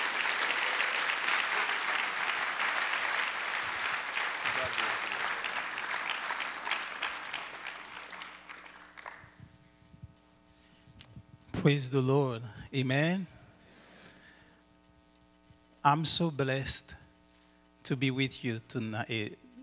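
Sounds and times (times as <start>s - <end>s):
rousing applause: 0.0s - 9.4s
speech: 11.6s - 13.3s, 15.8s - 17.0s, 17.9s - 19.4s.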